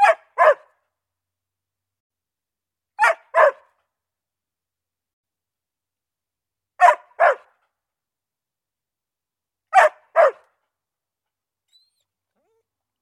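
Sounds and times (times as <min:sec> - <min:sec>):
dog barking: 0:00.0 - 0:00.8, 0:03.0 - 0:03.8, 0:06.8 - 0:07.6, 0:09.7 - 0:10.5.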